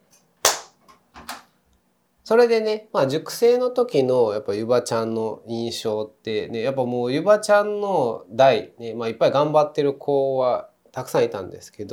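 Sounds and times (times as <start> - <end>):
hand claps: 0.4 - 1.5
speech: 2.3 - 11.9.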